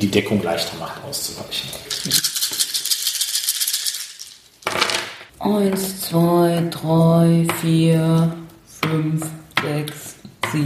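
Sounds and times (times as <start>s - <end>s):
speech: 0.0s - 2.3s, 5.4s - 10.6s
dice being shaken and rolled: 1.9s - 5.3s.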